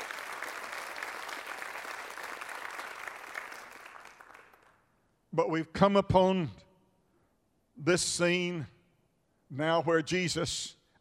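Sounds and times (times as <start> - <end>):
audience hand clapping: 0.0 - 4.9
speech: 5.4 - 6.6, 7.8 - 8.8, 9.5 - 10.8.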